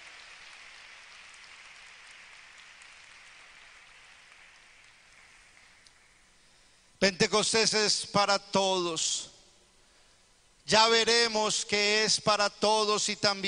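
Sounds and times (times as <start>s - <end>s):
audience applause: 0.0s - 6.2s
speech: 7.0s - 9.3s, 10.7s - 13.4s.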